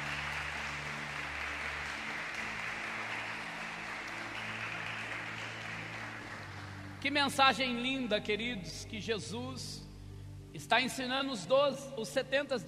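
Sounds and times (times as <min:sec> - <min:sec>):
audience applause: 0:00.0 - 0:07.0
speech: 0:07.0 - 0:09.9, 0:10.5 - 0:12.6.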